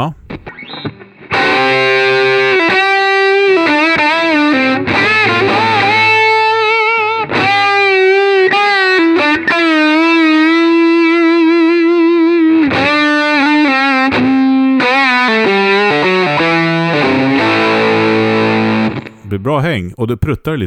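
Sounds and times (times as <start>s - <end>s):
speech: 0.0s - 0.2s, 19.4s - 20.6s
fuzz-distorted electric guitar playing single-note lines and bends: 0.0s - 19.2s.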